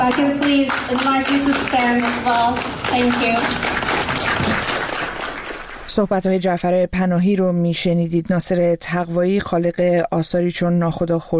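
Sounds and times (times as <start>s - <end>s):
audience applause honouring Iranian filmmaker Nasser Taghvaei: 0.0s - 6.0s
speech: 0.1s - 4.6s, 6.0s - 11.3s.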